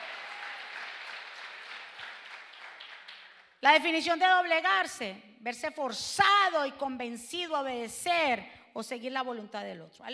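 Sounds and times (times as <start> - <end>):
crowd applauding: 0.0 - 3.5
speech: 3.6 - 10.1.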